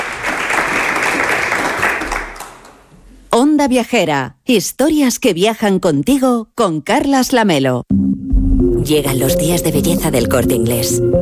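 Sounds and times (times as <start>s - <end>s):
live audience applause: 0.0s - 2.9s
speech: 3.4s - 11.1s.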